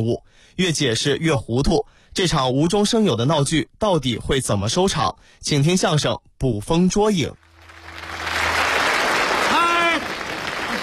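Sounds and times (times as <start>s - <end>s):
speech: 0.0s - 7.4s
audience applause: 7.4s - 10.8s.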